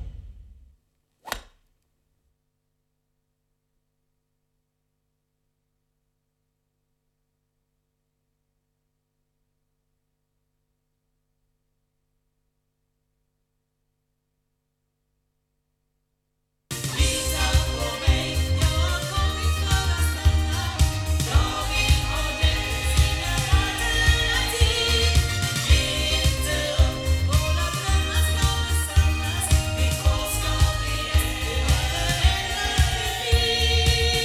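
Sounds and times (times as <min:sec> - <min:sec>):
loudspeaker playback recorded with Oktava MKL-5000 cardioid: 0:16.7 - 0:34.2.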